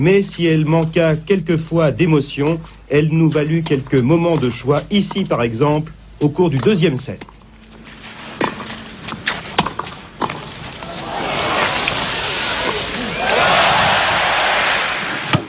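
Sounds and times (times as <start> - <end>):
speech: 0.0 - 7.4
crowd cheering at tennis final: 10.8 - 15.4.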